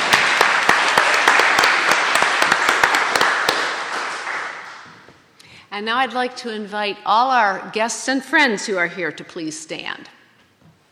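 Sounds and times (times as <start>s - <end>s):
crowd applauding: 0.0s - 5.1s
speech: 5.8s - 10.2s.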